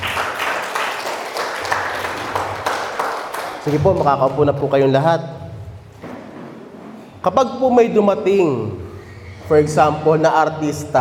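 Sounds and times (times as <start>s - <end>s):
audience applauding: 0.0s - 4.7s
speech: 3.6s - 5.4s, 7.2s - 8.8s, 9.5s - 10.9s.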